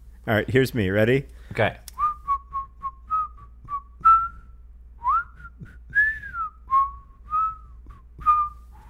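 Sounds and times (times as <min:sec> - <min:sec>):
speech: 0:00.2 - 0:01.8
person whistling a song melody: 0:02.0 - 0:08.8.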